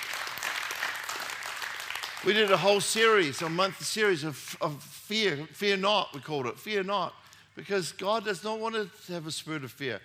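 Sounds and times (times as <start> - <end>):
audience clapping: 0.0 - 3.8
speech: 2.2 - 10.0.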